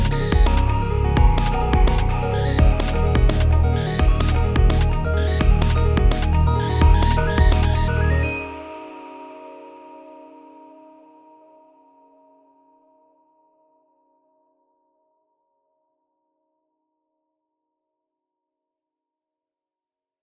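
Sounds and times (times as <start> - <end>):
MIDI music: 0.0 - 8.6.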